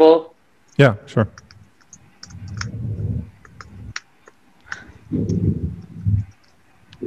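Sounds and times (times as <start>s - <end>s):
speech: 0.0s - 1.4s, 5.1s - 5.5s
typing an email on a computer keyboard: 1.4s - 2.8s, 3.4s - 6.6s.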